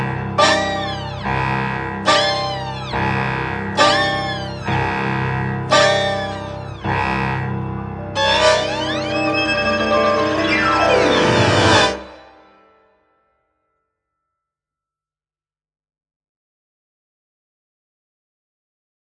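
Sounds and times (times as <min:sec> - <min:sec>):
tango music: 0:00.0 - 0:12.4.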